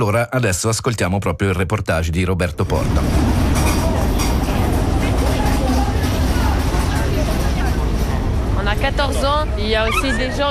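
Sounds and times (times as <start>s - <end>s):
speech: 0.0s - 3.7s, 9.4s - 10.4s
vehicle and engine rumble: 2.7s - 10.4s
crowd chatter at the train station in Bulle, Gruyère: 2.9s - 10.4s.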